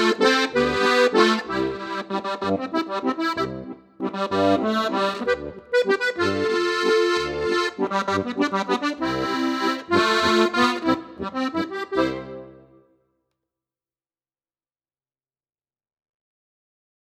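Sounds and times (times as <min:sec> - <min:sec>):
waltz music: 0:00.0 - 0:12.8.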